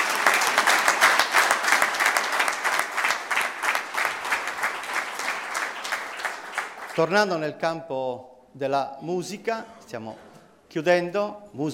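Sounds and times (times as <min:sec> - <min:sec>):
audience applause: 0:00.0 - 0:07.1
speech: 0:07.0 - 0:11.7.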